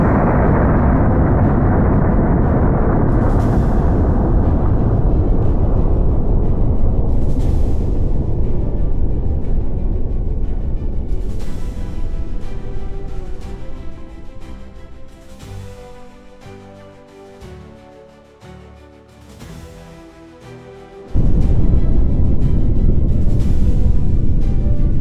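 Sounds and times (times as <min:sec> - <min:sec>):
distant missile launch: 0:00.0 - 0:16.1, 0:21.2 - 0:25.0.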